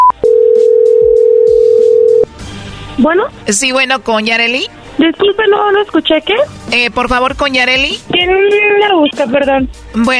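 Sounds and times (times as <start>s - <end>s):
telephone dialing beep: 0.0s - 2.2s
telephone ring tone: 0.0s - 2.3s
speech: 3.0s - 10.1s.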